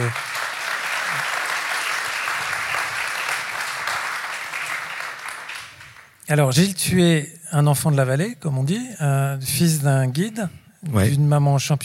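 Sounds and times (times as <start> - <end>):
speech: 0.0 - 0.3, 6.3 - 11.8
audience applause: 0.0 - 6.2.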